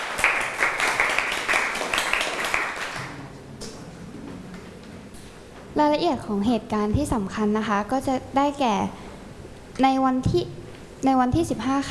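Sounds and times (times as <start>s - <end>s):
children clapping for a classmate: 0.0s - 3.2s
speech: 5.8s - 9.0s, 9.8s - 11.8s.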